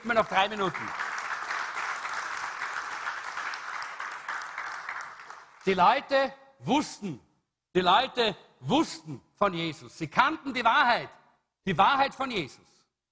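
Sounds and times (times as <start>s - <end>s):
speech: 0.0s - 1.1s, 5.6s - 12.8s
audience applause: 0.0s - 5.8s.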